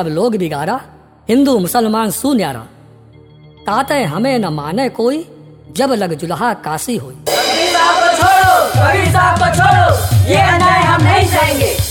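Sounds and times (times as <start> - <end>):
speech: 0.0 - 2.8, 3.6 - 7.4, 8.8 - 11.8
large angry crowd roaring and shouting: 7.3 - 11.7.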